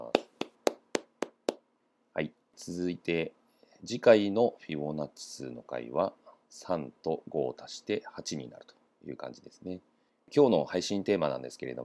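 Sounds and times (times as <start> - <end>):
one person clapping hands: 0.0 - 1.6
speech: 2.2 - 11.8.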